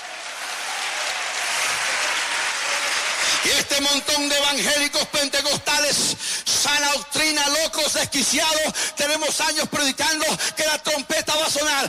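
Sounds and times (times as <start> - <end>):
loud applause: 0.0 - 4.5
speech: 3.4 - 11.8.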